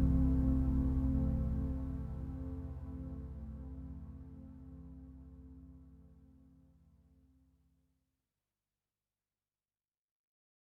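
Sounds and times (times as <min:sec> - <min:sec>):
synth drone: 0:00.0 - 0:05.6.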